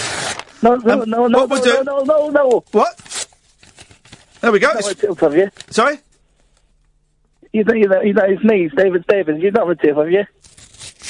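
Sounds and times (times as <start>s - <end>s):
paper check being ripped up: 0.0s - 5.0s, 10.4s - 11.0s
speech: 0.6s - 3.0s, 4.4s - 6.0s, 7.5s - 10.4s.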